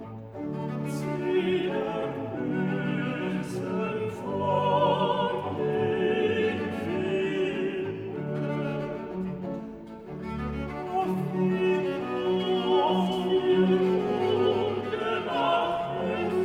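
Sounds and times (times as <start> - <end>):
alto, tenor and bass singing a cantata aria: 0.7 - 16.4.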